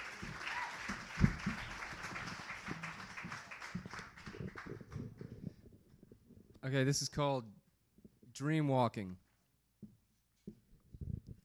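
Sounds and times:
crowd applause: 0.0s - 5.4s
speech: 6.7s - 7.6s, 8.4s - 9.2s.

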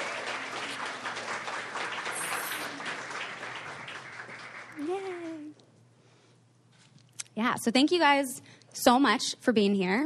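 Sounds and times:
audience applause welcoming a guest at a live recorded event: 0.0s - 5.4s
speech: 7.4s - 10.0s.

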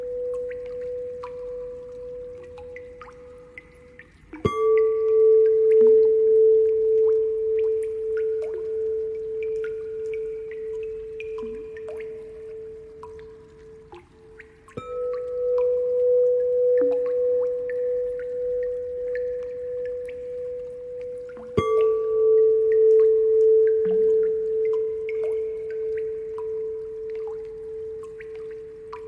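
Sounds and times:
water drops: 0.0s - 29.0s
singing bowl ringing: 4.4s - 13.0s, 14.8s - 28.0s.

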